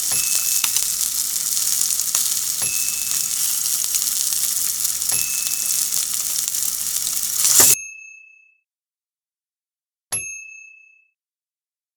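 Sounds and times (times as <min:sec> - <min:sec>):
medium sizzle: 0:00.0 - 0:07.8.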